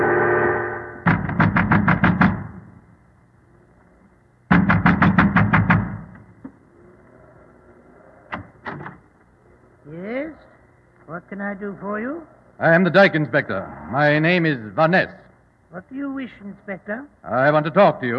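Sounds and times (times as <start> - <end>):
heavy pounding on a wooden door: 1.0 - 2.8, 4.5 - 6.2
speech: 11.3 - 18.1.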